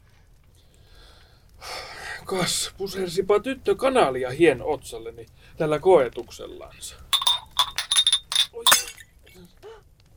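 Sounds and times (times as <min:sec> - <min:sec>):
speech: 0:02.3 - 0:07.1
sugar bowl dropped and breaking: 0:07.2 - 0:09.0.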